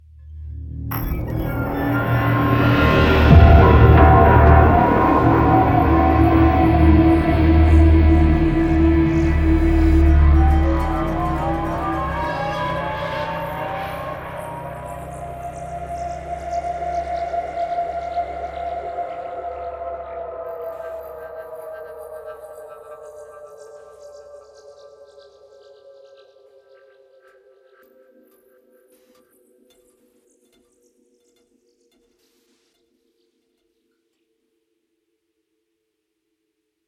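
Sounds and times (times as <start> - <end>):
musical sting: 0.9 - 19.4.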